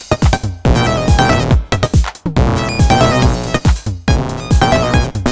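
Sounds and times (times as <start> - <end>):
Pocket Operator Modular 400 sine drum beat: 0.3 - 1.6, 2.4 - 5.2.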